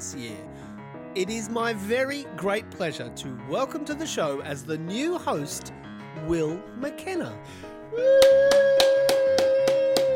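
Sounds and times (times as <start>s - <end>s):
speech: 0.1s - 0.6s, 1.2s - 9.0s
hand clapping: 8.1s - 10.1s.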